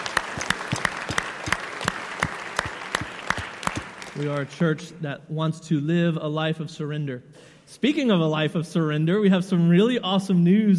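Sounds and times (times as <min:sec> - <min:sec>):
audience clapping: 0:00.0 - 0:04.8
speech: 0:04.2 - 0:10.7.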